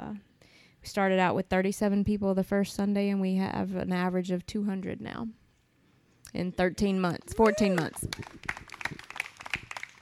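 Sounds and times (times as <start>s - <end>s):
speech: 0.8s - 5.4s, 6.3s - 8.7s
brief soft audience clapping: 7.3s - 9.9s.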